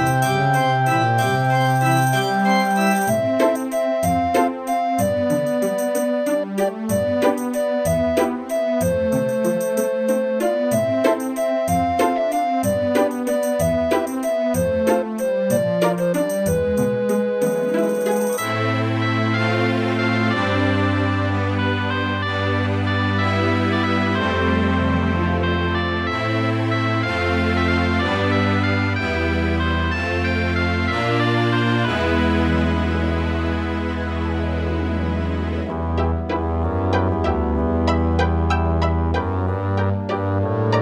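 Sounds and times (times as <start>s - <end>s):
Roland SD-50 sound module music in GS mode: 0.0s - 40.8s.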